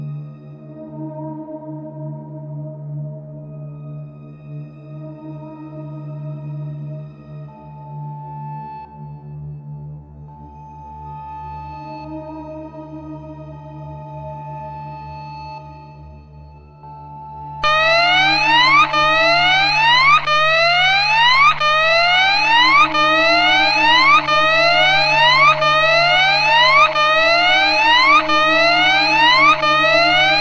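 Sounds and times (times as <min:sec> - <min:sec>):
siren: 0:17.6 - 0:30.4.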